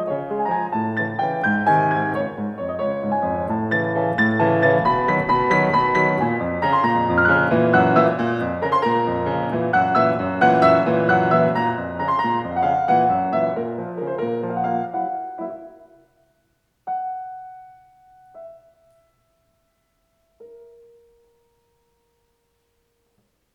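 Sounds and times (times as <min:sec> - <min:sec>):
waltz music: 0:00.0 - 0:16.1.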